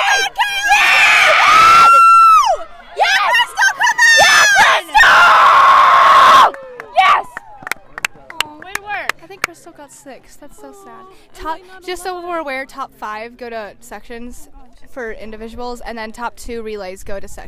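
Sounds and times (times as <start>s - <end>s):
group cheering and shouting: 0.0s - 7.7s
speech: 11.4s - 17.4s.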